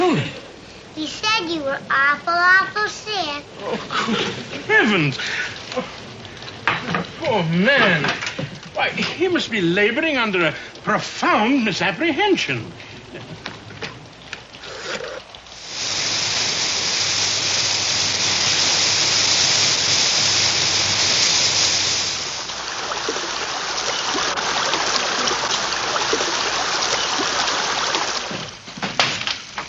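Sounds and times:
heavy storm rain pouring: 0.0 - 29.6
speech: 1.0 - 6.1, 7.2 - 13.4.

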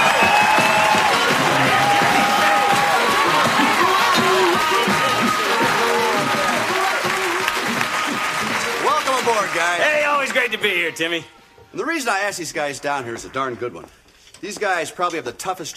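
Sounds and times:
large studio audience applause and cheering: 0.0 - 11.2
speech: 10.6 - 15.7.

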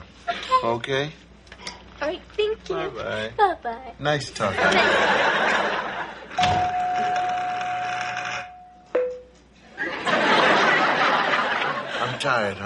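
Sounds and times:
speech: 0.6 - 1.2, 2.0 - 6.8, 12.2 - 12.6
laughter: 4.4 - 6.4, 9.8 - 12.4
doorbell ringing: 6.4 - 9.4.

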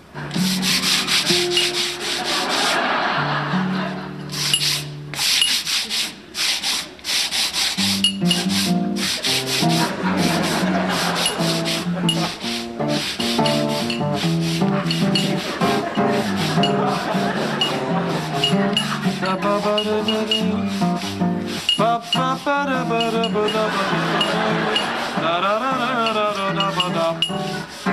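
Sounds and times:
laughter: 0.2 - 4.6, 8.3 - 13.1, 14.5 - 21.0, 23.0 - 27.8
sanding down a sticking wooden door: 0.4 - 2.9, 4.3 - 22.5.

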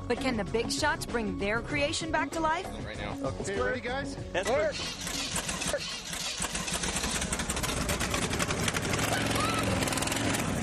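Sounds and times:
speech: 0.1 - 6.0
engine running rough with a bad misfire: 4.7 - 10.6.

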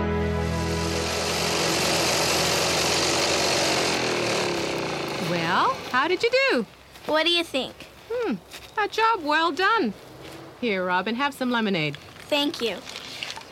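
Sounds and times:
lawnmower engine running: 0.1 - 6.4
speech: 6.1 - 10.1, 10.6 - 12.9.

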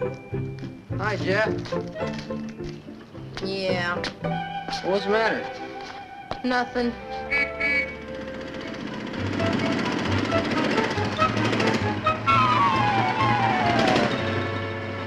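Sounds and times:
speech: 0.1 - 5.6, 6.4 - 7.8, 9.2 - 10.7
motor scooter riding past: 7.0 - 15.0.

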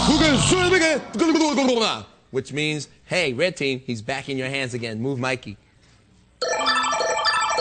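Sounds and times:
speech: 0.1 - 5.7
game show sudden death bell signal: 6.4 - 7.5.

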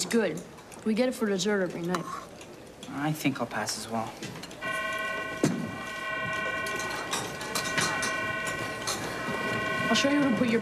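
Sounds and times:
speech: 0.1 - 2.3, 2.9 - 4.6, 9.9 - 10.6
buzzer droning: 4.6 - 10.6.

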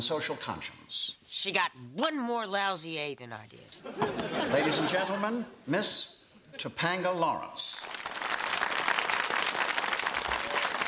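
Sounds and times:
speech: 0.0 - 8.1
laughter: 3.8 - 5.4
crowd applauding steadily: 7.9 - 10.8.

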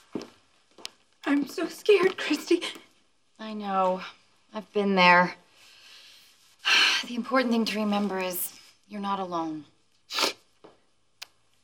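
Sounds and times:
speech: 1.3 - 5.4, 6.6 - 10.3
sneeze: 10.1 - 10.5.

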